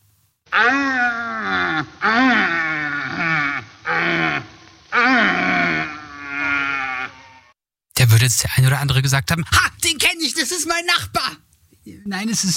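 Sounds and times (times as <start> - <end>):
red deer stag roaring during the rutting season: 0.5 - 7.5
speech: 8.3 - 12.5.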